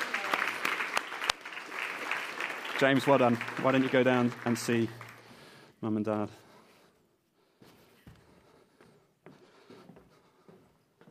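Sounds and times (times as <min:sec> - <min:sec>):
round of applause: 0:00.0 - 0:05.7
speech: 0:02.8 - 0:05.0, 0:05.8 - 0:06.4.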